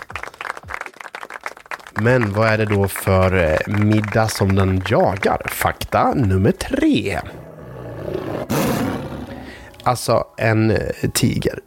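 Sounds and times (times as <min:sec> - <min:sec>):
applause: 0:00.0 - 0:05.9
speech: 0:02.0 - 0:07.4, 0:09.8 - 0:11.6.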